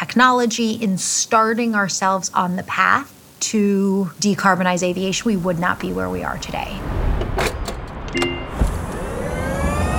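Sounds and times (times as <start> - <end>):
speech: 0.2 - 7.0, 8.1 - 8.4
electric motorbike riding through streets of Nairobi: 8.6 - 9.9.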